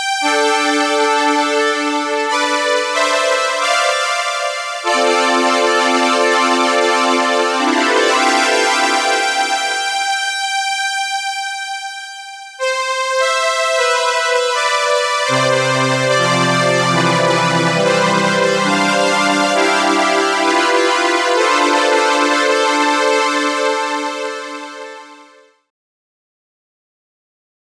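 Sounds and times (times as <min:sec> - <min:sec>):
synthesizers: 0:00.2 - 0:24.9
Solina string synthesizer: 0:15.1 - 0:24.8.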